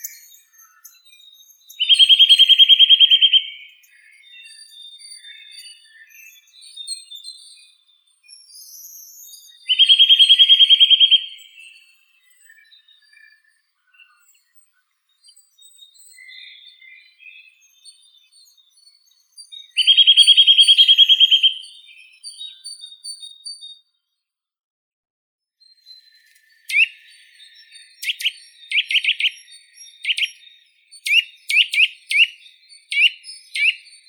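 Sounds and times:
Eurasian nuthatch Sitta europaea calling: 1.7s - 3.6s, 9.7s - 11.6s, 19.8s - 21.8s, 26.7s - 34.0s.

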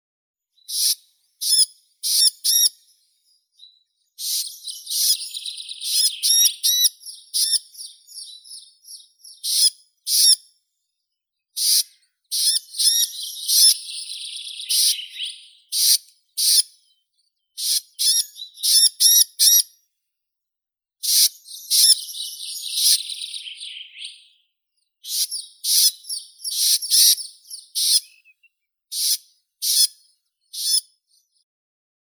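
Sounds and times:
Krueper's nuthatch Sitta krueperi calling in nature: 0.7s - 2.9s, 4.2s - 10.4s, 11.6s - 16.8s, 17.6s - 19.7s, 21.0s - 24.3s, 25.0s - 28.3s, 28.9s - 31.3s.

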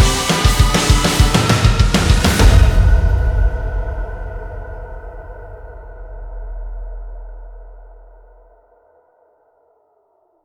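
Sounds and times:
drums: 0.0s - 8.1s.

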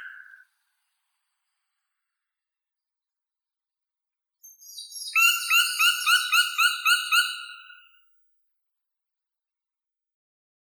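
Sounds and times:
black woodpecker Dryocopus martius: 4.5s - 7.6s.

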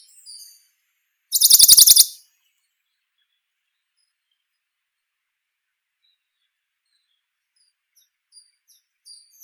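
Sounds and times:
Bonelli's warbler Phylloscopus bonelli: 1.3s - 2.1s.

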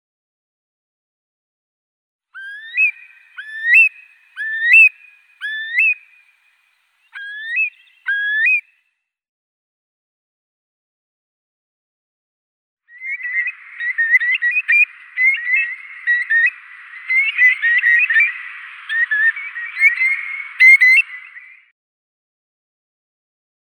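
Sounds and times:
Eurasian curlew Numenius arquata calling: 2.4s - 8.7s, 12.9s - 21.7s.

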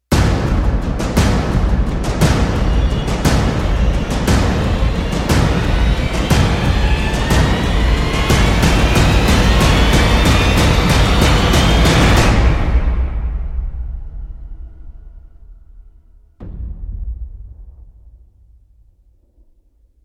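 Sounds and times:
drums speeding up: 0.1s - 19.6s
rising riser: 2.8s - 16.8s.

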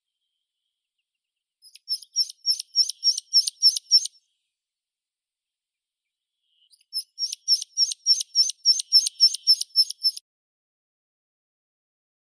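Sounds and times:
meadow pipit Anthus pratensis: 1.7s - 4.2s, 6.9s - 10.2s.

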